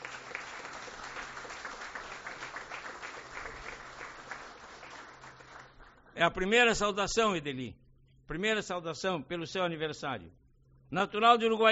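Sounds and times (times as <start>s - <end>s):
audience applause: 0.0s - 6.0s
speech: 6.2s - 11.7s.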